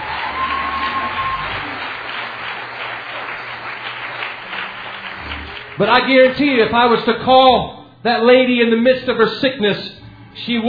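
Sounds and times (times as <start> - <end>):
crowd applause: 0.0 - 6.4
speech: 5.8 - 10.6.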